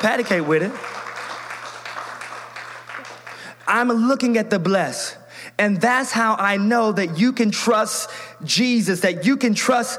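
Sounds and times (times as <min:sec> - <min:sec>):
speech: 0:00.0 - 0:01.0, 0:03.7 - 0:09.9
audience clapping: 0:00.0 - 0:04.0.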